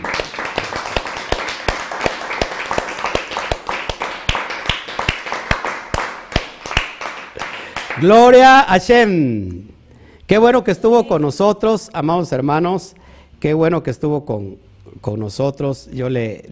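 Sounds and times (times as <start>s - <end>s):
audience applause: 0.0s - 8.1s
speech: 8.0s - 9.7s, 10.3s - 16.5s.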